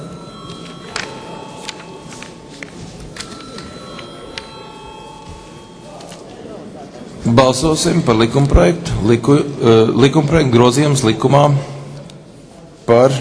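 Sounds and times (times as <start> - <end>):
electronic parliament voting bell ringing: 0.0 - 6.8
low murmur of voices: 0.0 - 13.1
clicks and shuffles: 0.4 - 4.6, 5.2 - 7.0
speech: 7.3 - 11.7, 12.9 - 13.1.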